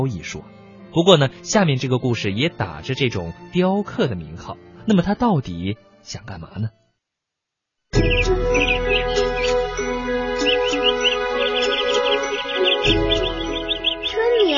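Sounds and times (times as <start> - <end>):
speech: 0.0 - 6.8
birds chirping: 8.0 - 14.5.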